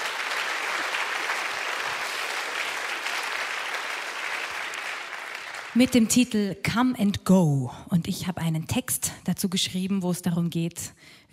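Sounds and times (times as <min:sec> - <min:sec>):
audience applause: 0:00.0 - 0:06.0
speech: 0:05.8 - 0:11.3.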